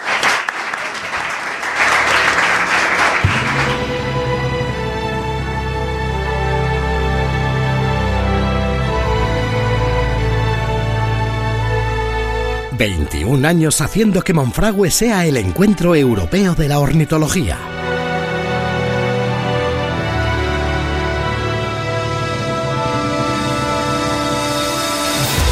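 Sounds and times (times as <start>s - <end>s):
crowd applauding: 0.0s - 6.4s
sustained musical passage: 1.6s - 25.4s
speech: 12.8s - 17.8s.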